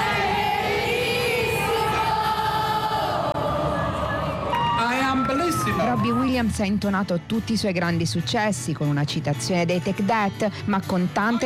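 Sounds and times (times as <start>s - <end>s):
concert audience singing and shouting together: 0.0s - 6.2s
speech: 6.0s - 11.4s.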